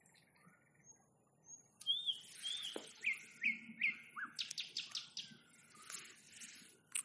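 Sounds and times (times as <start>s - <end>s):
nightingale song with whistles and rattles: 0.0s - 6.2s.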